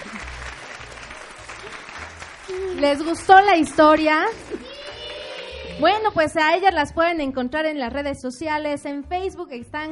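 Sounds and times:
audience applause: 0:00.0 - 0:05.9
speech: 0:02.5 - 0:04.5, 0:05.8 - 0:09.9.

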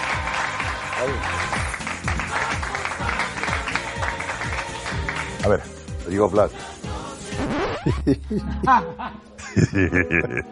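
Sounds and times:
applause: 0:00.0 - 0:05.7
speech: 0:01.0 - 0:01.7, 0:05.5 - 0:06.8, 0:07.8 - 0:10.5
laughter: 0:08.0 - 0:10.5.

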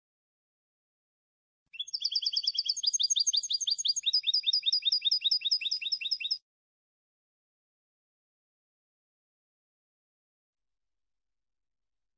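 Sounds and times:
European goldfinch singing high ringing twitters: 0:01.8 - 0:06.4.

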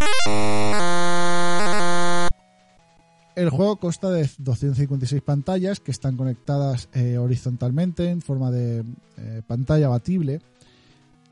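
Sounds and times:
retro video game synthesized Tarzan-style yell: 0:00.0 - 0:02.3
speech: 0:03.4 - 0:10.5.

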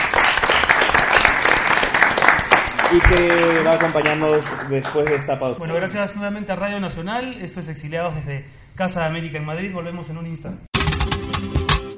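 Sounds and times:
audience applause: 0:00.0 - 0:05.6
speech: 0:02.9 - 0:11.6.

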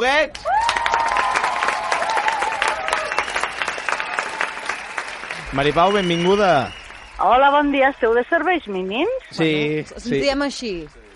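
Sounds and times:
speech: 0:00.0 - 0:00.7, 0:05.5 - 0:11.0
loud audience applause: 0:00.4 - 0:07.7.

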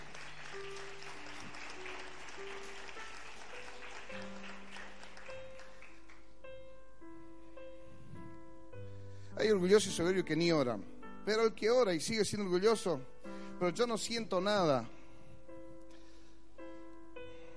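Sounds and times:
audience applauding loudly: 0:00.0 - 0:06.4
speech: 0:09.4 - 0:15.0.

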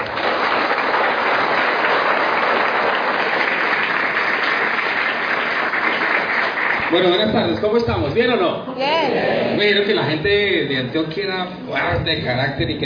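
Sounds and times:
strong audience applause: 0:00.0 - 0:07.7
speech: 0:06.9 - 0:12.8.

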